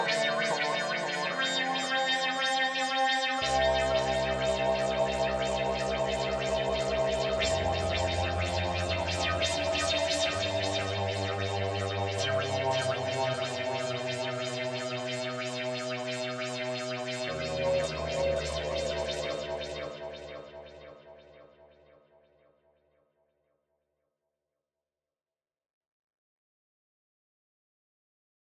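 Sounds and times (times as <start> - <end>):
String Studio VS3 synthesized strings: 0.0 - 21.0.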